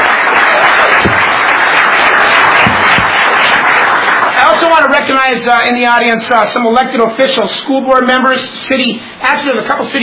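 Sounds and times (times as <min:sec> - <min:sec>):
audience applause: 0:00.0 - 0:05.0
speech: 0:05.1 - 0:10.0.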